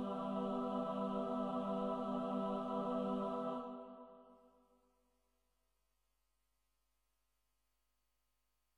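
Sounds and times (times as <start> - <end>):
choir singing: 0.0 - 4.5.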